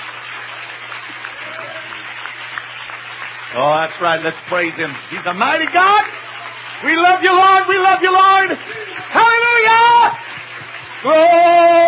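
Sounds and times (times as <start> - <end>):
crowd clapping: 0.0 - 11.8
speech: 3.5 - 6.2, 6.8 - 10.2, 11.0 - 11.8.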